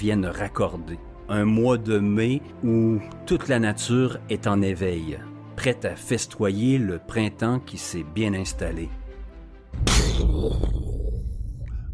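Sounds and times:
speech: 0:00.0 - 0:09.0, 0:09.7 - 0:10.8
gunshot: 0:09.8 - 0:10.5.

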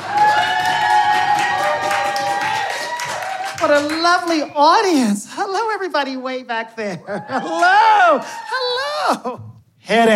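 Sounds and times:
audience applause and cheering welcoming a stage performer in a red dress: 0:00.0 - 0:04.6, 0:07.2 - 0:09.0
speech: 0:03.6 - 0:10.1.

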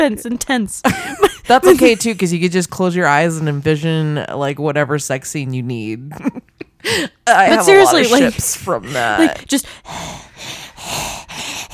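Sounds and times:
speech: 0:00.0 - 0:11.0
heavy raspy breathing into microphone: 0:08.4 - 0:11.7.

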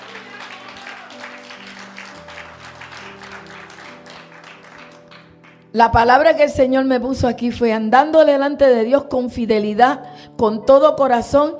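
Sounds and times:
congregation applauding inside a church: 0:00.0 - 0:05.7
speech: 0:05.7 - 0:11.5.

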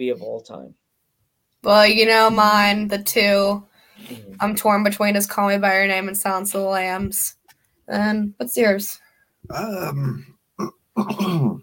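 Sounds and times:
speech: 0:00.0 - 0:00.8, 0:01.6 - 0:11.6
coughing fit: 0:09.5 - 0:11.6.

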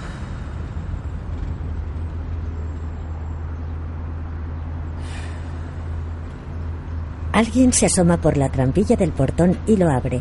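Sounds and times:
road-like hiss: 0:00.0 - 0:07.2
car engine rumbling as it pulls up and parks: 0:00.0 - 0:10.1
speech: 0:07.4 - 0:10.1.

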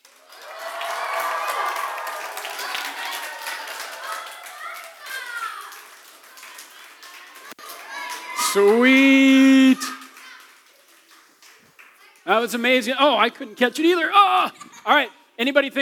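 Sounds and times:
audience cheering and applause: 0:00.0 - 0:11.5
speech: 0:08.5 - 0:09.9, 0:12.3 - 0:15.8.

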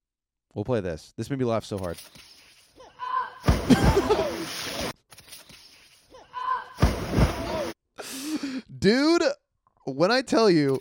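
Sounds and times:
speech: 0:00.5 - 0:02.3, 0:08.6 - 0:10.7
heavy thuds of people falling: 0:03.4 - 0:04.4, 0:06.8 - 0:07.7
laughter: 0:03.6 - 0:04.9.

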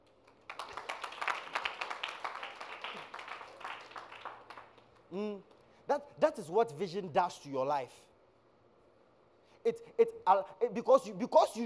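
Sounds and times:
crowd clapping: 0:00.0 - 0:05.2
speech: 0:05.1 - 0:08.1, 0:09.6 - 0:11.6.

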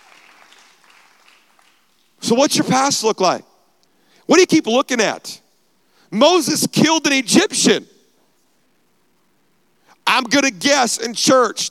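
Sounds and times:
audience clapping: 0:00.0 - 0:02.2
speech: 0:02.3 - 0:03.5, 0:04.3 - 0:05.4, 0:06.1 - 0:07.9, 0:10.2 - 0:11.7.

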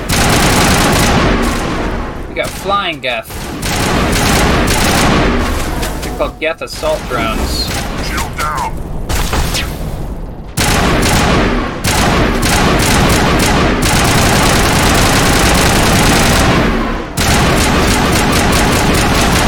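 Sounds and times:
video game rifle gunfire: 0:00.0 - 0:02.0, 0:03.3 - 0:05.7, 0:10.6 - 0:19.4
speech: 0:02.6 - 0:04.2, 0:06.2 - 0:07.7
combat noise: 0:06.8 - 0:09.8.

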